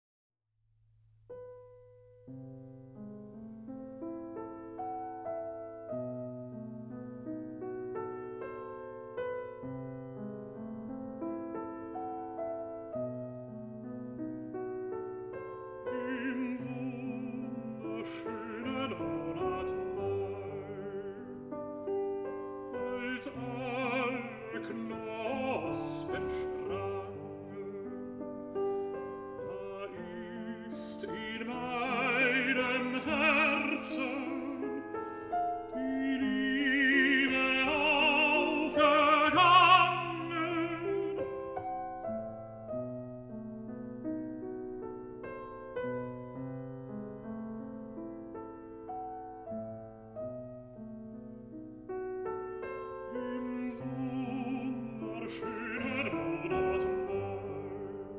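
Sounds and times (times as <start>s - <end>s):
piano: 1.2s - 58.1s
person singing a song cycle: 15.8s - 21.7s, 22.8s - 41.7s, 53.0s - 58.1s.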